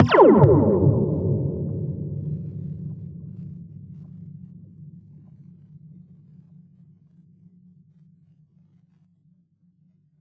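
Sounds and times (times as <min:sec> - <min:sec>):
slinky impulse response: 0:00.0 - 0:02.1.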